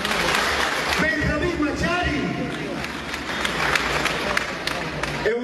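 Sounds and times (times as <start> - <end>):
audience applause: 0.0 - 5.3.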